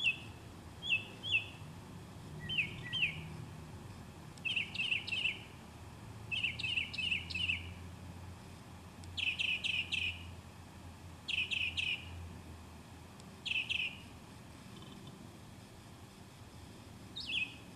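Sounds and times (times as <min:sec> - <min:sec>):
birdsong: 0:00.0 - 0:01.7, 0:02.4 - 0:03.4, 0:04.4 - 0:05.6, 0:06.3 - 0:07.8, 0:09.0 - 0:10.4, 0:11.2 - 0:12.2, 0:13.4 - 0:15.1, 0:17.1 - 0:17.7.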